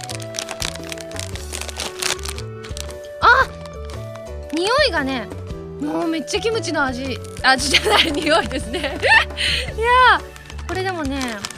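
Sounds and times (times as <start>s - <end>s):
bag of potato chips being torn open: 0.0s - 4.8s, 7.1s - 8.7s, 10.0s - 11.5s
music: 0.0s - 11.5s
speech: 4.6s - 11.5s
laughter: 7.6s - 9.7s.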